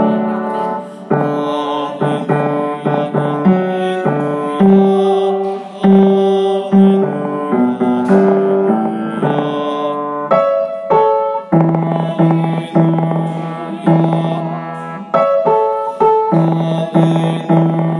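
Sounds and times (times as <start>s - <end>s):
bass choir voices singing alleluia: 0.0s - 17.9s.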